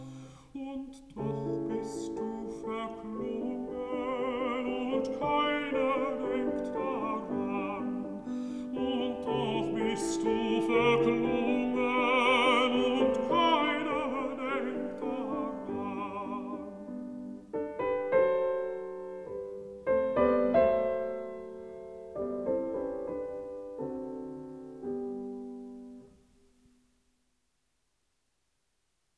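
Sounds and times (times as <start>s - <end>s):
person singing: 0.0s - 17.1s
piano: 0.0s - 27.1s.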